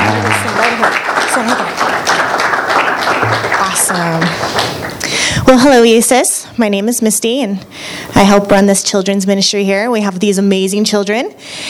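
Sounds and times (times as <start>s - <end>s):
audience clapping for children: 0.0s - 5.3s
speech: 5.5s - 11.6s.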